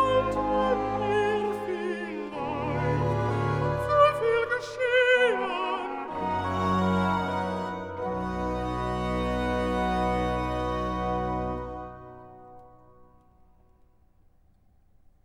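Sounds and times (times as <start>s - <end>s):
alto singing recitative: 0.0s - 12.0s.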